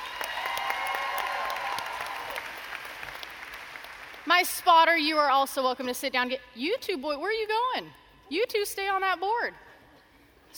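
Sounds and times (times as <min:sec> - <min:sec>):
audience applause: 0:00.0 - 0:04.3
speech: 0:04.3 - 0:09.6.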